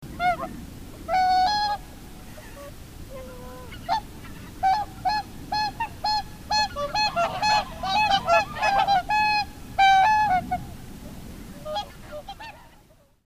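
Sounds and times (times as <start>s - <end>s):
whooper swan trumpeting honks: 0.1s - 10.8s, 11.6s - 12.8s.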